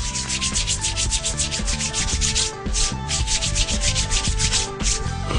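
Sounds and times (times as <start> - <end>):
hands rubbing briskly together: 0.0 - 5.2.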